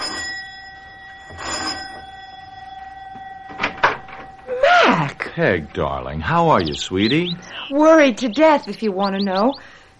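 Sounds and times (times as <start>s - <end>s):
doorbell ringing: 0.0s - 7.1s
speech: 5.2s - 9.9s.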